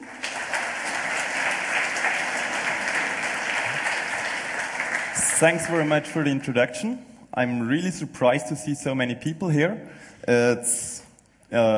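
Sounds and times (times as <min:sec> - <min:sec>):
audience applause: 0:00.0 - 0:06.6
speech: 0:05.4 - 0:11.7.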